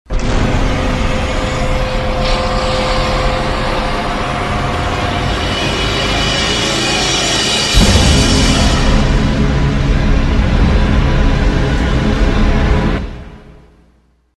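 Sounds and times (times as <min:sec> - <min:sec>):
scary sound: 0:00.1 - 0:14.0.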